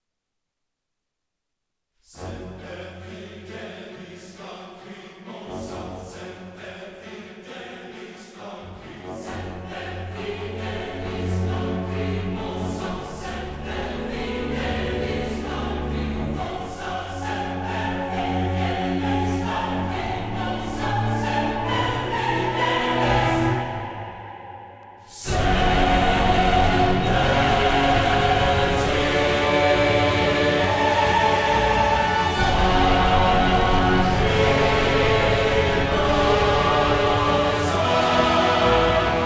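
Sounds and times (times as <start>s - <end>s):
choir: 2.0s - 39.2s
orchestra: 8.6s - 24.5s, 25.2s - 39.2s.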